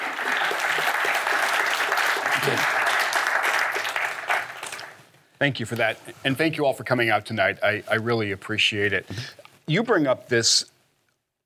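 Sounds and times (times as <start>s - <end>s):
audience applause: 0.0s - 5.0s
speech: 2.4s - 2.8s, 5.4s - 10.7s.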